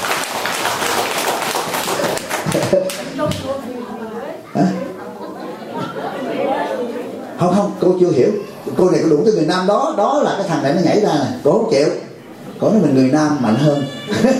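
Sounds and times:
audience applause: 0:00.0 - 0:03.0
speech: 0:02.5 - 0:04.8, 0:07.4 - 0:12.0, 0:12.6 - 0:14.3
laughter: 0:04.6 - 0:07.2, 0:13.8 - 0:14.3.

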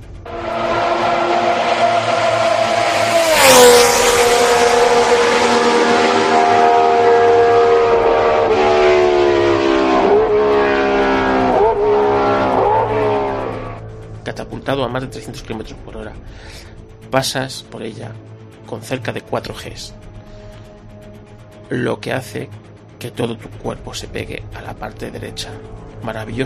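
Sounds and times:
racing car engine screaming at full throttle through a fast left-hand curve: 0:00.2 - 0:14.0
speech: 0:14.8 - 0:20.0, 0:21.7 - 0:26.4.

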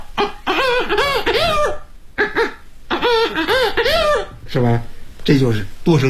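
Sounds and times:
human voice mimicking several birds clucking and crowing: 0:00.0 - 0:04.4
speech: 0:04.5 - 0:06.0.

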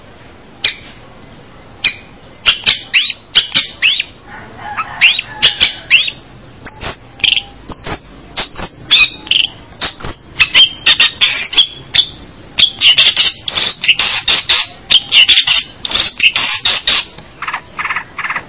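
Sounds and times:
bird chirping in high sharp notes: 0:00.6 - 0:01.0, 0:01.6 - 0:18.4.

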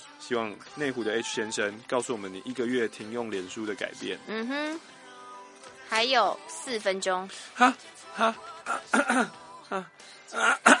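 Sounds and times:
speech: 0:00.3 - 0:05.0, 0:05.9 - 0:10.7
person coughing: 0:08.7 - 0:09.3, 0:10.4 - 0:10.7
throat clearing: 0:08.7 - 0:09.4, 0:10.3 - 0:10.7.

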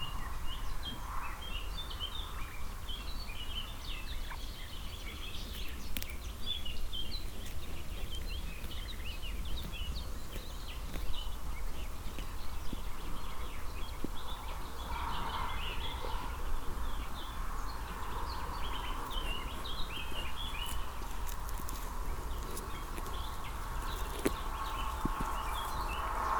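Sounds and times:
sheep grazing and chewing: 0:00.0 - 0:26.3.

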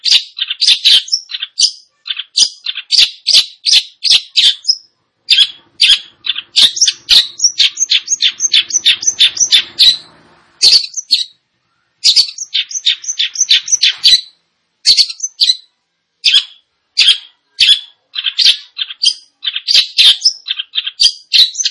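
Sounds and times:
long-tailed shrike song: 0:00.0 - 0:21.7
faint hum: 0:04.8 - 0:18.2.

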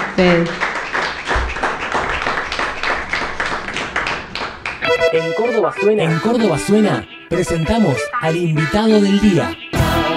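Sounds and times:
audience applause: 0:00.0 - 0:05.8
speech: 0:00.2 - 0:00.7, 0:05.1 - 0:09.6.

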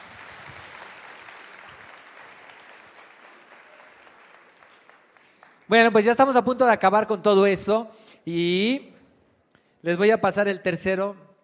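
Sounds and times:
audience applause at a sales talk: 0:00.0 - 0:05.7
speech: 0:05.7 - 0:08.9, 0:09.8 - 0:11.2.

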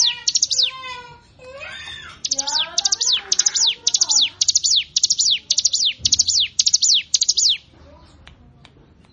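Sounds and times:
Prinia song of rapid high sharp descending chirps: 0:00.0 - 0:01.0, 0:02.1 - 0:07.7.

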